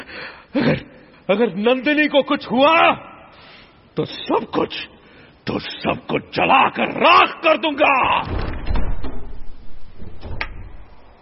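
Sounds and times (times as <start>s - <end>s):
speech: 0.5s - 3.1s, 4.0s - 4.9s, 5.5s - 8.4s
chamber door opening: 8.2s - 11.1s.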